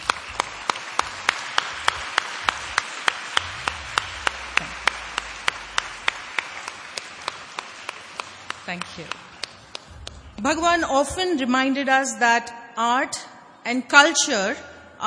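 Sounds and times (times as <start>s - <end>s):
audience applause: 0.0s - 10.9s
speech: 8.7s - 9.3s, 10.4s - 15.0s.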